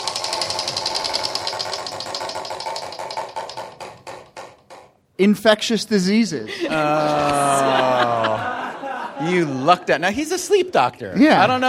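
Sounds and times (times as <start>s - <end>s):
game show prize wheel being spun: 0.0s - 4.7s
speech: 5.2s - 8.6s, 9.2s - 11.6s
laughter: 6.4s - 10.1s.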